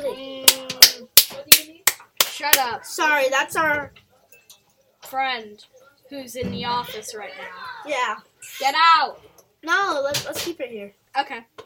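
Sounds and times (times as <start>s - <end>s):
hand claps: 0.4s - 2.7s
speech: 2.4s - 4.0s, 5.1s - 11.6s.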